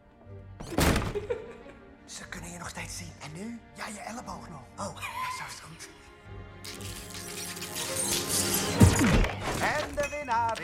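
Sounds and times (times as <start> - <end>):
door slammed shut hard: 0.6 - 1.3
speech: 1.2 - 1.5, 2.1 - 7.2, 9.0 - 10.6.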